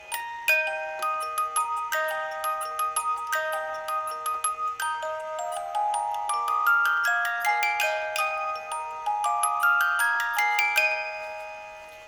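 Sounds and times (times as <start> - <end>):
fast music box loop: 0.0 - 12.0.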